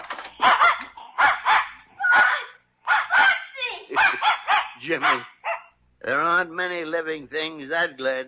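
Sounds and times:
dog barking excitedly with whiny yelping yaps: 0.2s - 5.8s
speech: 4.8s - 5.3s, 6.0s - 8.2s.

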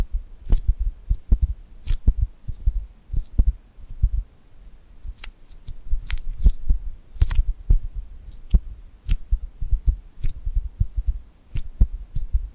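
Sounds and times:
soft low thumps: 0.0s - 4.3s, 5.8s - 12.5s
skin pulling away from glue: 0.4s - 4.0s, 4.6s - 9.3s, 10.2s - 10.4s, 11.5s - 12.3s.

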